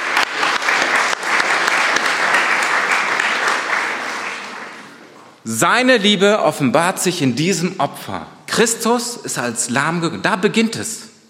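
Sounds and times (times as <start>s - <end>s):
audience applause: 0.0s - 5.2s
speech: 5.5s - 11.1s.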